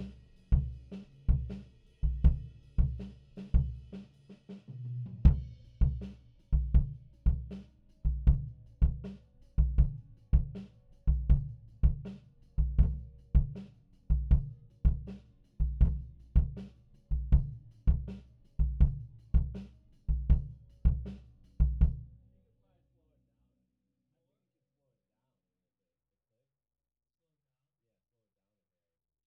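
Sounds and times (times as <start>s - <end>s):
kick drum: 0.0s - 3.9s, 5.2s - 7.5s, 8.1s - 22.1s.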